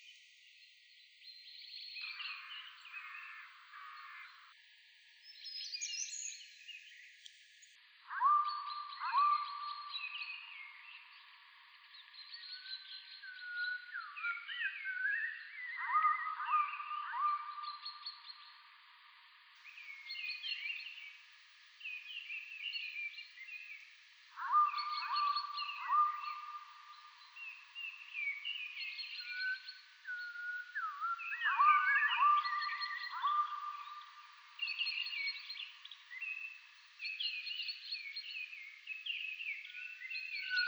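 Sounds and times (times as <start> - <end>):
tangle of birds calling: 8.1 - 18.8, 19.7 - 40.6.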